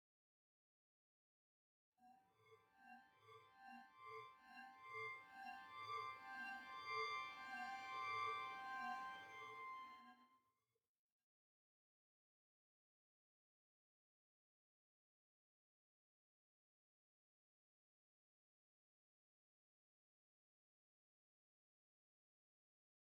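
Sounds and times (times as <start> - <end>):
synths and pads: 2.4 - 10.0.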